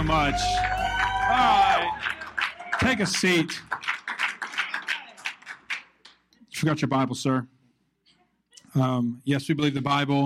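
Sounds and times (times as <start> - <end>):
speech: 0.0 - 2.2, 2.8 - 3.7, 6.6 - 7.5, 8.7 - 10.2
audience clapping: 0.0 - 6.3.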